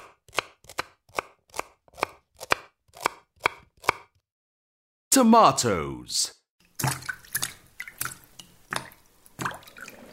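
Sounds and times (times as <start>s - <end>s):
knife chopping onions on a board: 0.0s - 4.2s
speech: 5.2s - 7.0s.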